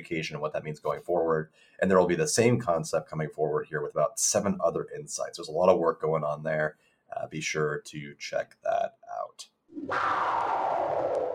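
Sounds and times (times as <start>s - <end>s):
speech: 0.0s - 11.1s
spaceship whoosh: 9.7s - 11.3s.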